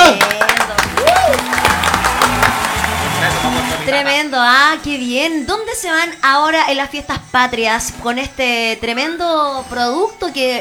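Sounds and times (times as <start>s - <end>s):
audience applause: 0.0s - 4.0s
speech: 4.3s - 10.5s.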